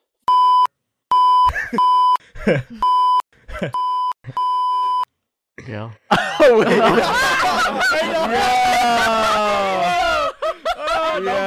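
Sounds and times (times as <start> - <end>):
censor bleeps over a spoken phone number: 0.3 - 2.2, 3.8 - 5.1
laughter: 1.5 - 2.9, 6.1 - 11.4
people talking: 5.6 - 10.2, 10.8 - 11.4.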